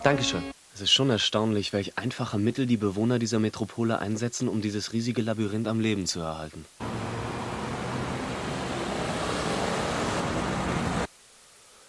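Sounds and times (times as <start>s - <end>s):
speech: 0.0s - 6.9s
buses moving through city traffic: 6.8s - 11.1s.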